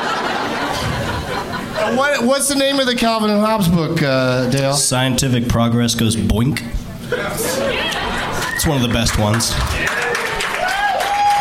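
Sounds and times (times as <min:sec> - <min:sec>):
laughter: 0:00.0 - 0:02.6, 0:07.0 - 0:10.6
speech: 0:01.8 - 0:07.7, 0:08.6 - 0:09.9
audience clapping: 0:07.9 - 0:11.3
person whooping: 0:10.5 - 0:11.3.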